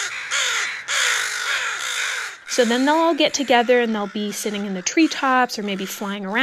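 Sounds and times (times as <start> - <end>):
crow harsh alarm cawing: 0.0 - 6.4
speech: 2.6 - 6.4.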